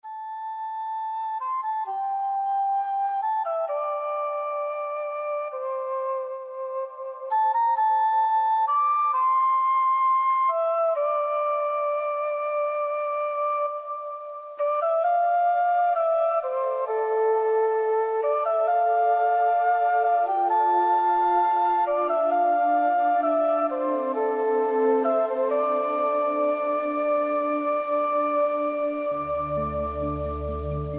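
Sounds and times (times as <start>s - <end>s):
Reiki meditation music: 0.1s - 30.9s.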